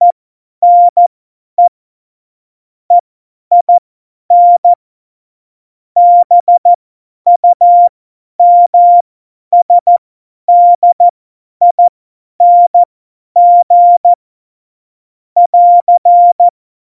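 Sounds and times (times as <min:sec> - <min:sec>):
CW Morse code at tempo 70: 0:00.0 - 0:01.7, 0:02.9 - 0:04.8, 0:06.0 - 0:09.0, 0:09.6 - 0:14.2, 0:15.4 - 0:16.5.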